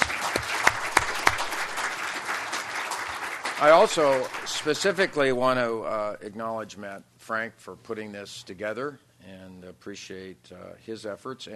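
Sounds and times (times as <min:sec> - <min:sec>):
audience applause for panelists: 0:00.0 - 0:05.8
speech: 0:03.6 - 0:11.5.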